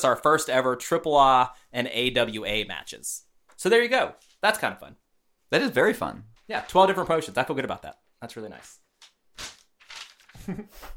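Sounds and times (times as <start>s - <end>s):
speech: 0.0s - 8.8s, 10.4s - 10.9s
paper page turning: 6.4s - 10.9s.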